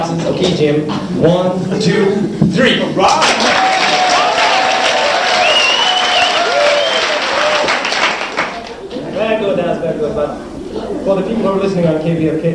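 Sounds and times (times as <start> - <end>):
speech: 0.1 - 3.6, 10.2 - 12.5
room full of people clapping rapidly: 3.0 - 9.0
whoops and voices: 3.4 - 7.7.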